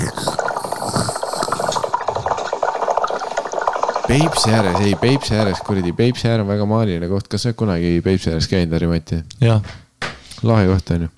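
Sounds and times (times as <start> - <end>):
hookah water pipe bubbling: 0.0 - 7.1
speech: 4.1 - 9.8, 10.4 - 11.1.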